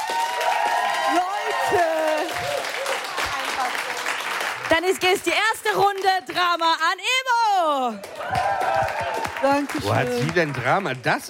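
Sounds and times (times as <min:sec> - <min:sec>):
crowd cheering: 0:00.0 - 0:04.8, 0:07.7 - 0:11.2
crowd applauding: 0:00.0 - 0:06.6, 0:07.8 - 0:11.2
speech: 0:04.8 - 0:11.2.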